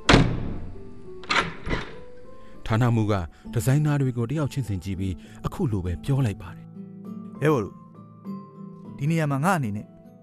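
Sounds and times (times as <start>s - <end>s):
heavy meeting-hall door pulled shut: 0.0s - 2.2s
speech: 2.7s - 6.6s, 7.4s - 7.8s, 9.0s - 9.9s.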